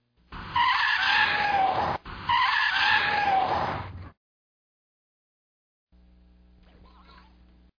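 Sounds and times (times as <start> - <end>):
tire screech: 0.4 - 4.2.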